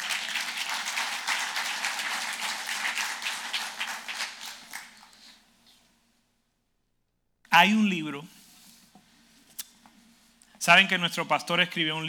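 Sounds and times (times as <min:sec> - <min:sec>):
audience applause: 0:00.0 - 0:05.1
speech: 0:07.6 - 0:08.4, 0:10.6 - 0:12.0.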